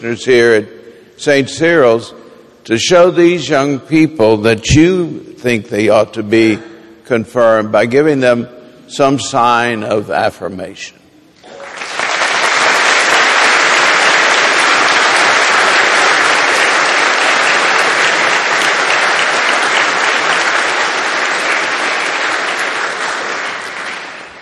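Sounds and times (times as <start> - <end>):
speech: 0.0 - 11.0
audience applause: 11.4 - 24.4.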